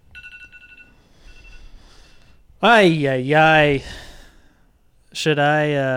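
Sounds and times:
timer alarm going off: 0.0 - 2.3
speech: 2.6 - 4.0, 5.2 - 5.9.

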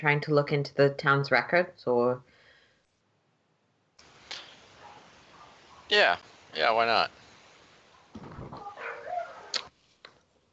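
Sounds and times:
speech: 0.0 - 2.3, 5.9 - 7.2
dogs barking and yipping: 4.7 - 6.0, 7.9 - 9.6.

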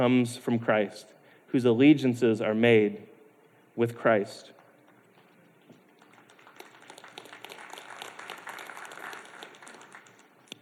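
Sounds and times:
speech: 0.0 - 3.1, 3.8 - 4.6
soft polite golf clap from a small group: 5.7 - 10.6.

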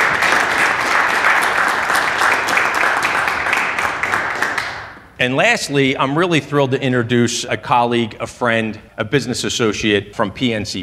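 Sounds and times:
round of applause: 0.0 - 5.0
speech: 5.2 - 10.8.

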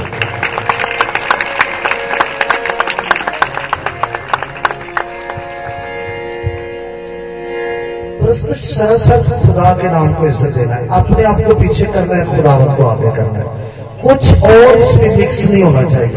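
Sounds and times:
audience clapping: 0.0 - 6.0
speech: 8.3 - 16.1.

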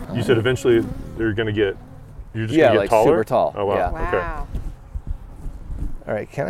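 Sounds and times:
honeybees buzzing in an opened hive: 0.0 - 5.1
speech: 0.1 - 4.6, 6.1 - 6.4.

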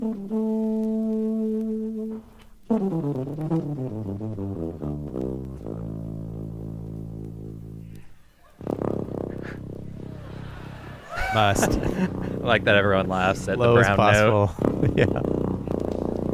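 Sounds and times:
tuba solo: 0.0 - 16.3
laughter: 9.3 - 15.4
speech: 11.4 - 15.4.

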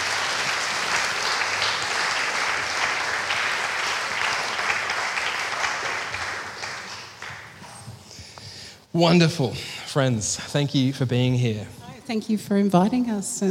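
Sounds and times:
audience applause welcoming two speakers: 0.0 - 7.9
speech: 9.0 - 13.4.

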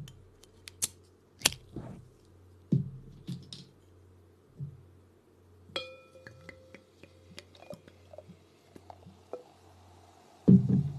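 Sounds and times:
glass clinking: 5.8 - 8.3
carbonated drink fizzing as poured: 7.4 - 10.9.

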